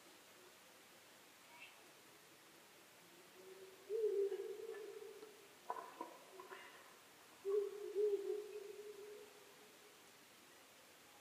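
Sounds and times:
owl low hoot: 3.2 - 6.8, 7.4 - 9.7.

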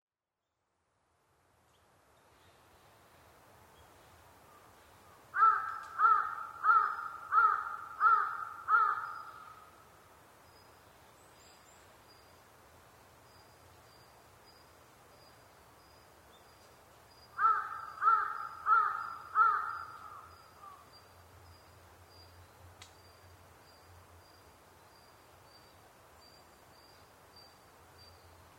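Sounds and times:
Large-billed crow cawing: 5.4 - 9.7, 17.4 - 20.8.

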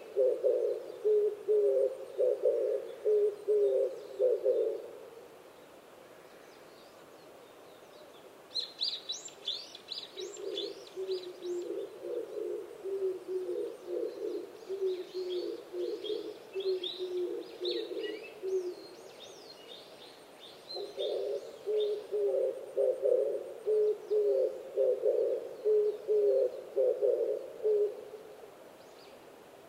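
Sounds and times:
Oriental turtle dove cooing: 0.0 - 5.1, 10.2 - 19.0, 20.8 - 28.3.

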